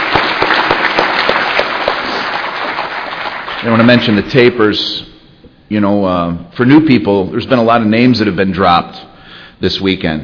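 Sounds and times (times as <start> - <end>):
audience round of applause: 0.0 - 4.6
speech: 3.6 - 5.1, 5.7 - 10.2.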